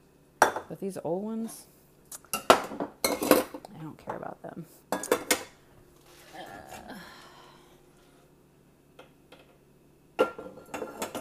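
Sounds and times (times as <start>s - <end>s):
speech: 0.7s - 1.8s, 2.7s - 4.9s
dishes and pots clattering while loading a dishwasher: 2.3s - 4.3s, 4.9s - 5.6s, 10.2s - 11.1s.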